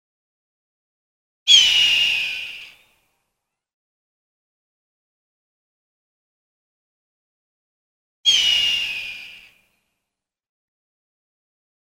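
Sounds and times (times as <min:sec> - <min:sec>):
hawk giving harsh hoarse screams: 0:01.5 - 0:02.8, 0:08.3 - 0:09.6.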